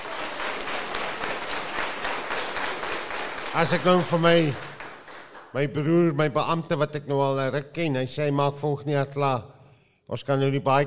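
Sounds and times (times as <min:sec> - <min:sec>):
audience applause: 0:00.0 - 0:05.6
speech: 0:03.6 - 0:04.7, 0:05.5 - 0:09.5, 0:10.1 - 0:10.8.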